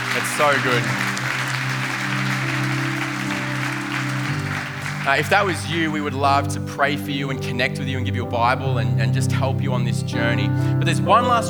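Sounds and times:
crowd clapping: 0.0 - 7.7
laughter: 0.0 - 11.4
speech: 0.2 - 1.1, 5.0 - 11.4.

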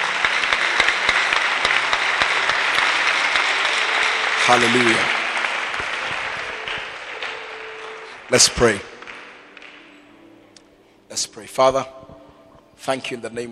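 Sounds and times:
audience clapping and applauding: 0.0 - 10.8
speech: 4.5 - 5.2, 8.3 - 8.9, 11.2 - 12.0, 12.8 - 13.5.

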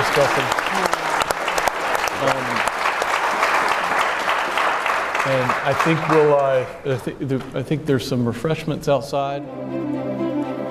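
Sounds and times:
audience round of applause: 0.0 - 7.1
speech: 0.2 - 1.0, 2.2 - 2.7, 5.2 - 10.0.

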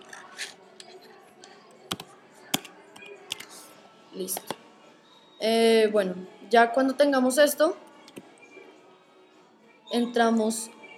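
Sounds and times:
computer keyboard typing a name: 1.9 - 3.5, 4.3 - 4.6
speech: 4.2 - 4.6, 5.4 - 7.8, 10.0 - 10.8.

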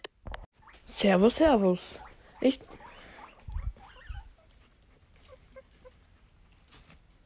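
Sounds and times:
guinea pig squeaking: 0.6 - 6.4
speech: 1.0 - 2.7
rustling shuffles: 4.2 - 7.2.

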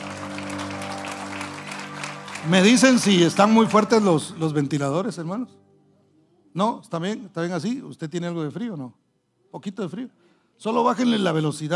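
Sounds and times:
audience applauding: 0.0 - 4.5
speech: 2.4 - 5.6, 6.6 - 11.7.

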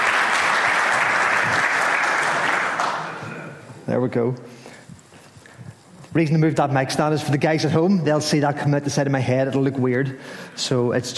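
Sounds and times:
audience round of applause: 0.0 - 3.6
speech: 3.9 - 4.6, 6.1 - 11.1.

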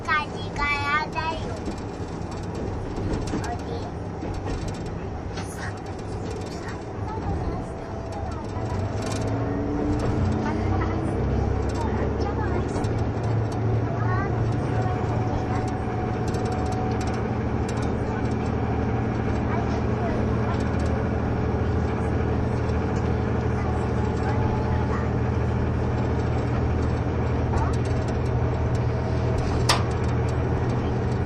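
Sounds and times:
voice: 0.0 - 1.8, 3.1 - 4.0, 5.4 - 25.9, 27.4 - 28.2, 30.5 - 31.2
Kiha 71 Yufuin no Mori diesel train running: 0.0 - 31.2
short clicks and rattles: 0.1 - 21.1, 21.8 - 31.2.

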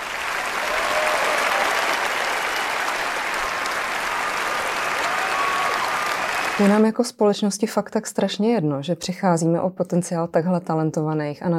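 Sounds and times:
applause: 0.0 - 6.9
speech: 6.6 - 11.5.

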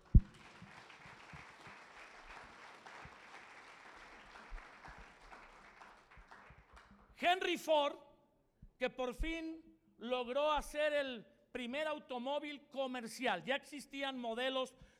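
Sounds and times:
audience applause: 0.0 - 7.1
speech: 7.2 - 8.0, 8.8 - 14.9.

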